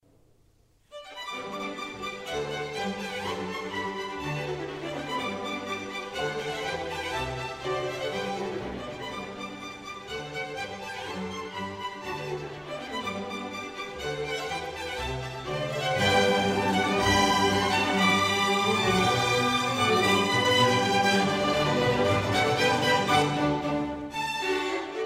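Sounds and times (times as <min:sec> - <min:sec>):
classical serenade rondo in G major: 0:00.9 - 0:25.0.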